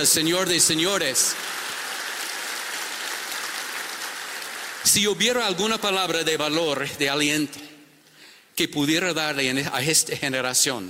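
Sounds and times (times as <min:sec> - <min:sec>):
speech: 0:00.0 - 0:01.7, 0:04.8 - 0:07.7, 0:08.6 - 0:10.8
crowd applause: 0:00.7 - 0:05.0.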